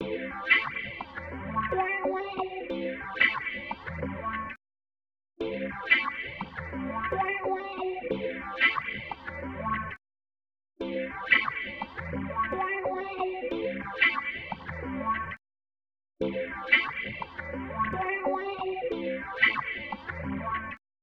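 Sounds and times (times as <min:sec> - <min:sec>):
guitar: 0:00.0 - 0:04.6, 0:05.4 - 0:10.0, 0:10.8 - 0:15.4, 0:16.2 - 0:20.8.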